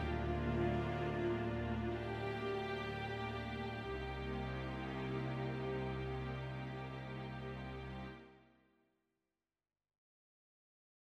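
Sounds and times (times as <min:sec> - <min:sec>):
slow adagio string music: 0:00.0 - 0:08.5.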